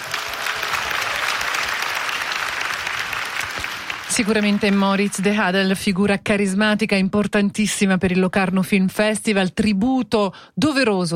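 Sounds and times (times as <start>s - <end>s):
audience applause: 0.0s - 5.4s
speech: 4.2s - 11.1s.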